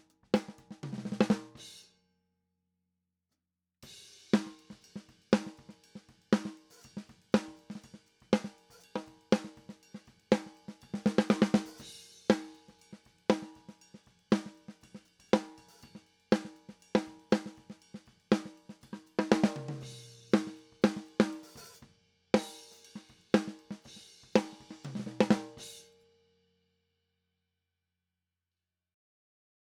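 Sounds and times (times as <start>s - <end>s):
snare drum top: 0.0s - 1.6s, 4.3s - 25.9s.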